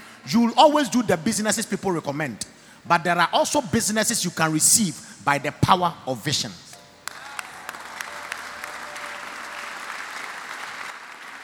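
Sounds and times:
speech: 0:00.2 - 0:06.7
audience clapping: 0:07.0 - 0:11.4.

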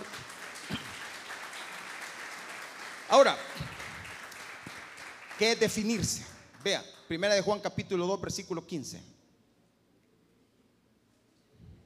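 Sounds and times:
audience applause: 0:00.0 - 0:06.6
speech: 0:03.1 - 0:03.6, 0:05.4 - 0:09.1.

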